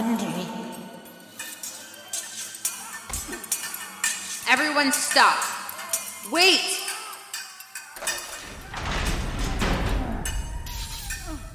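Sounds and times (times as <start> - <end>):
doors opening: 3.0 - 4.4, 8.0 - 11.5
speech: 4.6 - 5.6, 6.3 - 6.8.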